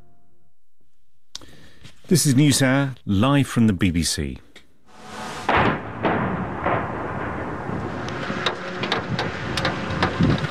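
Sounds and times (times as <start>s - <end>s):
speech: 2.1s - 4.4s
continuous rumbling roar with sharp cracks and pops: 4.9s - 10.5s
missile and drone strikes hitting a city: 4.9s - 10.5s.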